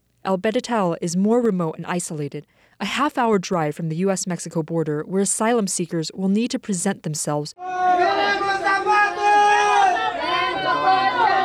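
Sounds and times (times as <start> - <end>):
speech: 0.2 - 8.6
crowd of migrants shouting demands: 7.6 - 11.4.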